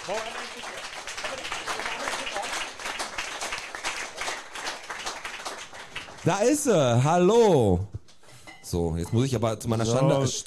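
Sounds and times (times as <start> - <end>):
audience applause: 0.0 - 7.0
speech: 0.1 - 1.8, 6.2 - 7.9, 8.7 - 10.4.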